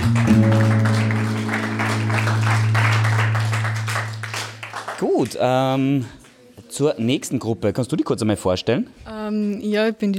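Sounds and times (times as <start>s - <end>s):
audience applause: 0.0s - 5.7s
speech: 5.2s - 6.2s, 6.8s - 10.1s.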